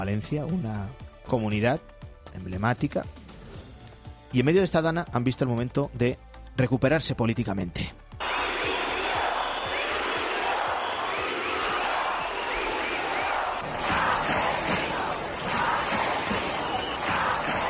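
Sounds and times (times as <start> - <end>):
speech: 0.0 - 3.2, 4.3 - 8.0
protest crowd shouting chants in central Valencia: 8.2 - 17.6.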